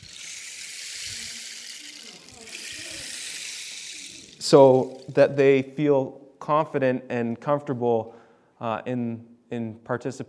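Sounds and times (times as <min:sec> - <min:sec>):
homemade rain stick being played: 0:00.0 - 0:05.4
speech: 0:04.5 - 0:10.2.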